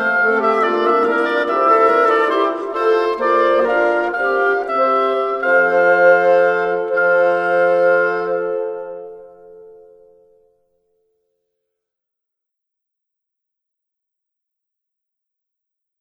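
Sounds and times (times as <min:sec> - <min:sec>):
instrumental Christmas carol: 0:00.0 - 0:10.6.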